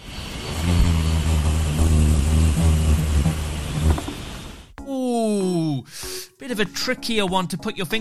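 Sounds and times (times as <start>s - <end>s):
hummingbird wings beating: 0.0s - 4.7s
speech: 6.5s - 7.9s.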